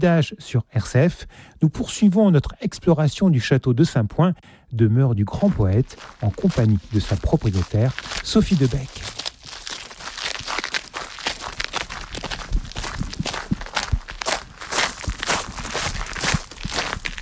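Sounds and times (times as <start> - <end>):
speech: 0.0 - 9.3
footsteps climbing a small tower staircase at Château de Saint-Point: 5.3 - 17.2.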